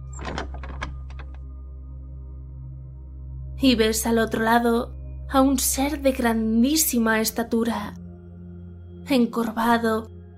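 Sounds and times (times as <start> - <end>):
door opening: 0.0 - 1.4
speech: 3.6 - 8.0, 9.1 - 10.2.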